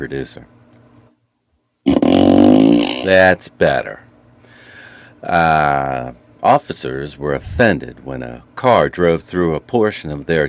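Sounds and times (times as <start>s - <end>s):
speech: 0.0s - 0.6s, 3.0s - 4.1s, 5.2s - 10.4s
fart sound effect: 1.8s - 3.1s.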